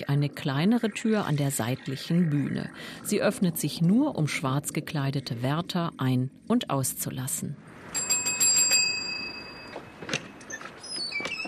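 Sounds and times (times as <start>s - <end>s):
speech: 0.0s - 8.0s
small bell ringing: 7.9s - 10.0s.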